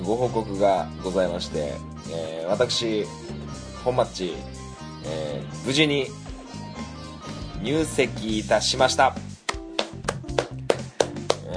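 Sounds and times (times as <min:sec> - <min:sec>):
speech: 0:00.1 - 0:06.2, 0:07.6 - 0:09.2
one person clapping alone in a room: 0:09.5 - 0:11.5.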